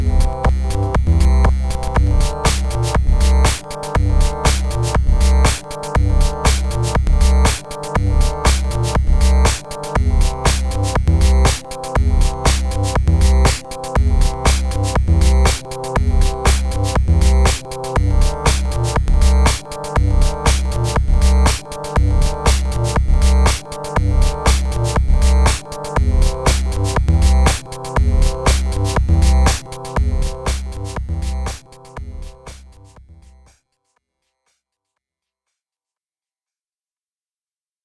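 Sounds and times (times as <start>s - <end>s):
chiptune music from a DMG synced with a GBA Micro: 0.0s - 33.5s.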